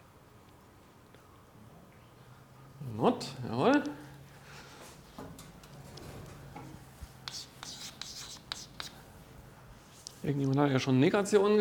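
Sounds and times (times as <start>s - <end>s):
speech: 3.0s - 4.0s, 10.3s - 11.5s
writing on a board during a lecture on logic operations: 7.1s - 9.0s.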